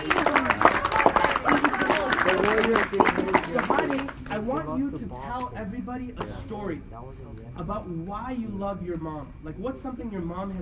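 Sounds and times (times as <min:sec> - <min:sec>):
crowd clapping: 0:00.0 - 0:04.8
speech: 0:02.7 - 0:10.5.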